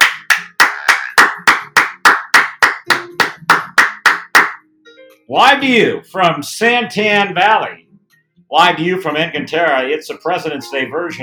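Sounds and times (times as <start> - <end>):
round of applause: 0.0 - 4.6
speech: 5.3 - 7.8, 8.5 - 11.2.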